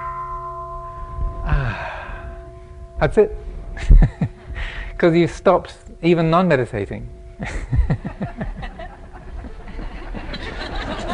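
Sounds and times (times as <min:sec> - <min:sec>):
meditation bell ringing: 0:00.0 - 0:11.1
soft breathy sigh: 0:01.5 - 0:02.4
speech: 0:03.0 - 0:04.4, 0:05.0 - 0:08.0
laughter: 0:03.8 - 0:04.3, 0:07.4 - 0:11.1.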